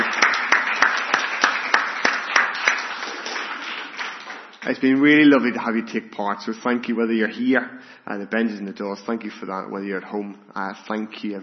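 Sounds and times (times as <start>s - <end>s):
audience applause: 0.0s - 5.0s
speech: 4.6s - 11.4s.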